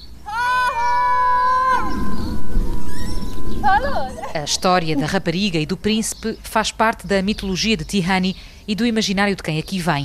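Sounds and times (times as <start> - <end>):
hiss: 0.0 - 10.0
long loud shout: 0.2 - 2.3
speech: 4.0 - 10.0.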